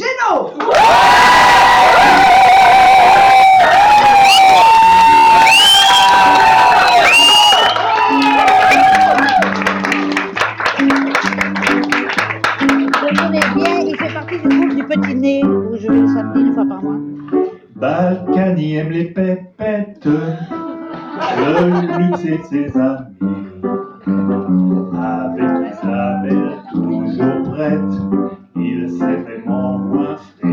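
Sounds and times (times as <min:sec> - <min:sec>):
large audience cheering, whooping and applauding: 0:00.6 - 0:15.0
piano-like melody: 0:00.8 - 0:30.5
laughter: 0:20.3 - 0:22.6.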